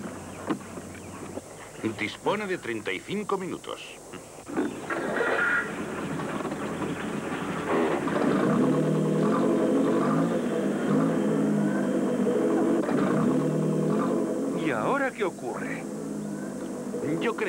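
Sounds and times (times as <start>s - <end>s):
speech: 1.8s - 4.0s, 17.2s - 17.4s
car engine revving with rear wheels spinning on a jack: 4.5s - 17.4s.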